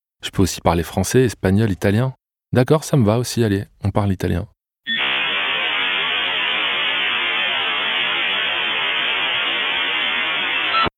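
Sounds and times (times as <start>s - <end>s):
speech: 0.2s - 4.6s
dial-up modem handshake static: 4.9s - 10.9s.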